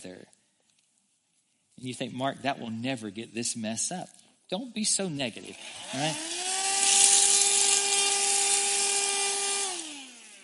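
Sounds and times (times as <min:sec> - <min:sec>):
speech: 0:00.0 - 0:00.4, 0:01.8 - 0:06.3
small vacuum cleaner running: 0:05.4 - 0:10.4.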